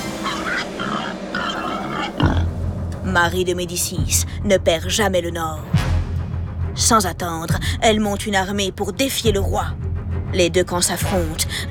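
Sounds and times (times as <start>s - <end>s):
wild boars grunting and snorting along a road: 0.0s - 2.7s
speech: 3.2s - 5.8s, 6.8s - 11.6s.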